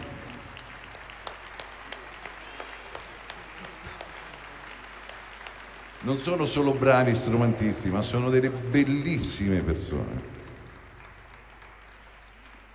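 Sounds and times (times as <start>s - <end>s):
audience applause: 0.0s - 12.7s
speech: 6.0s - 10.4s.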